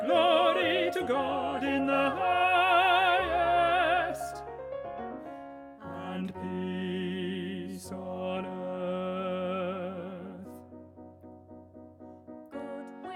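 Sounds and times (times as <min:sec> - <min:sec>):
tenor voice singing: 0:00.0 - 0:04.4, 0:05.8 - 0:10.6.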